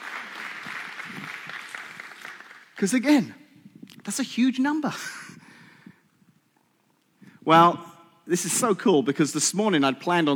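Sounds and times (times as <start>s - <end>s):
audience applause: 0.0s - 2.9s
speech: 2.8s - 3.4s, 4.1s - 5.2s, 7.5s - 10.3s.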